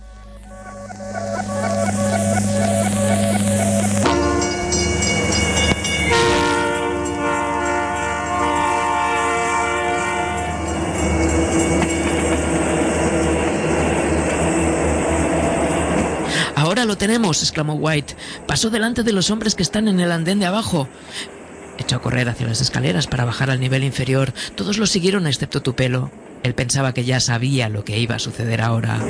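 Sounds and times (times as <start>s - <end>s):
train wheels screeching: 0.0s - 16.5s
fast train passing: 0.0s - 29.0s
speech: 17.4s - 21.3s, 21.9s - 29.0s.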